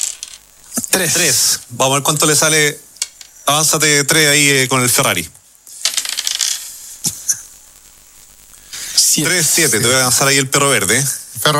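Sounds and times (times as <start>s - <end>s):
dice being thrown on a board: 0.0s - 0.4s, 5.8s - 6.6s
speech: 0.9s - 2.8s, 3.5s - 5.4s, 9.2s - 11.5s.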